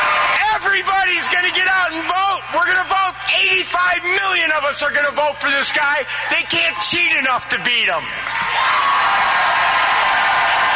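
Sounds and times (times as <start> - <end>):
crowd cheering wildly: 0.0 - 10.7
speech: 1.1 - 9.8.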